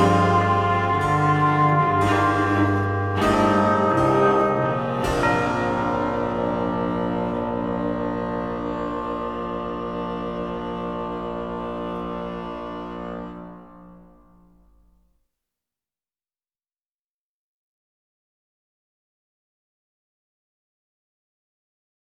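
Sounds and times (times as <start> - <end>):
bells: 0.0 - 13.7
harpsichord: 0.0 - 14.4
bassoon: 0.0 - 14.8
cello: 0.0 - 14.8.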